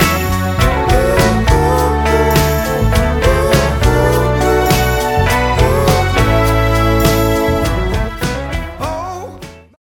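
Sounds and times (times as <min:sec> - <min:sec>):
Rhodes electric piano: 0:00.0 - 0:08.8
Moog synthesizer string arrangement: 0:00.4 - 0:08.4.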